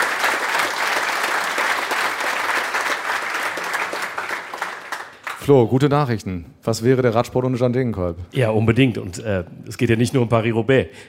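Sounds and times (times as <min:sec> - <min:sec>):
audience applause: 0:00.0 - 0:05.4
speech: 0:05.5 - 0:11.0.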